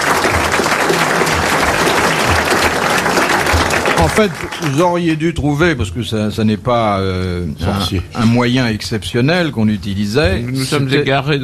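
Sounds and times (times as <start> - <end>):
audience applause: 0.0 - 5.2
speech: 4.0 - 11.4.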